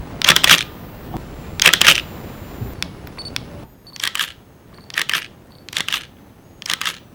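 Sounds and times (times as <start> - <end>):
Nikon D80 camera sounds: 0.2 - 0.7, 1.6 - 2.1, 2.8 - 7.1.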